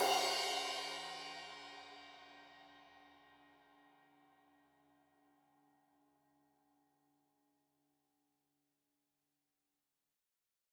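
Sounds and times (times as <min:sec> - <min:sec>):
15 inch crash cymbal edge hit: 0:00.0 - 0:02.0.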